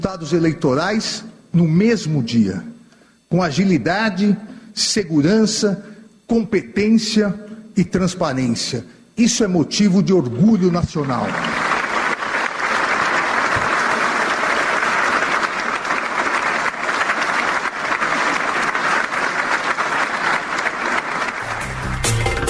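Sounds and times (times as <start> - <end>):
speech: 0.0 - 2.7, 3.3 - 11.6
audience applause: 11.0 - 22.4.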